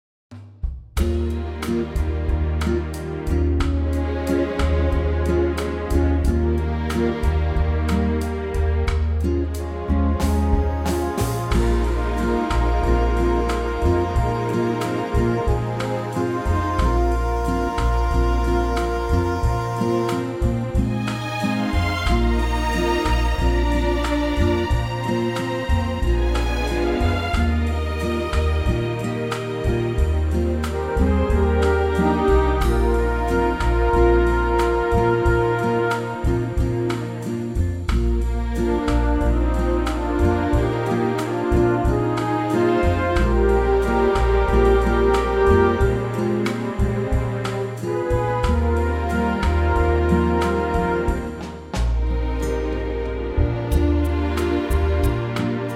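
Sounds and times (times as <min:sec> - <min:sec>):
ballad in E flat: 0:01.0 - 0:55.7.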